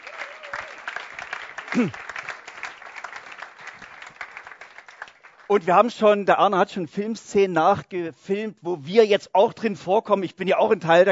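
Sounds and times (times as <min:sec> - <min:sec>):
group clapping: 0:00.0 - 0:06.0
speech: 0:01.7 - 0:02.1, 0:05.5 - 0:11.1.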